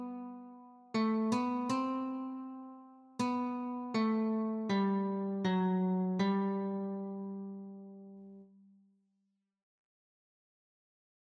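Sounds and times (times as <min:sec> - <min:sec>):
guitar notes: 0:00.0 - 0:08.4.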